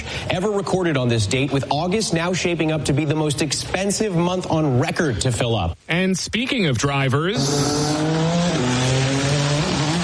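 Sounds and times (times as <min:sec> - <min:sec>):
speech: 0:00.3 - 0:08.2
IndyCar race cars speeding past in a Grand Prix in Washington, D.C.: 0:07.4 - 0:10.0.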